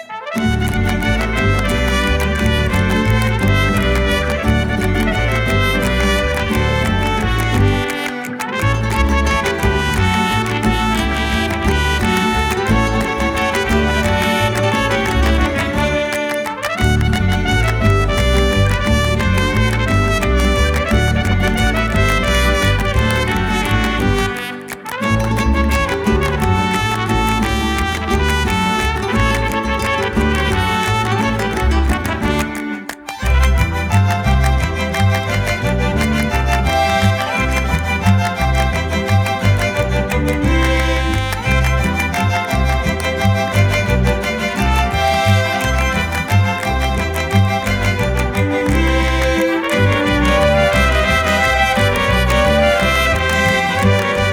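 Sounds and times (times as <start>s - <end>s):
mariachi music: 0.0s - 54.3s.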